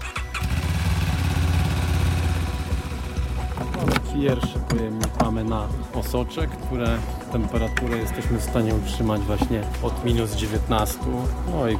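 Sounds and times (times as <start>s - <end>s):
motorcycle ambulance engine starting and idling: 0.1s - 4.6s
speech: 4.2s - 11.7s.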